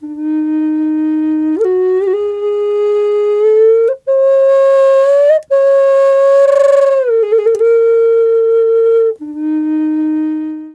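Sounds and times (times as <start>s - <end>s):
wild flute: 0.0s - 10.7s.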